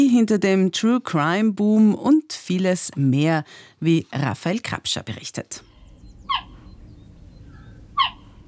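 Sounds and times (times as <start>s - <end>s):
speech: 0.0s - 5.7s
cheetah chirping: 5.6s - 8.4s
low rumbling background: 5.6s - 8.4s.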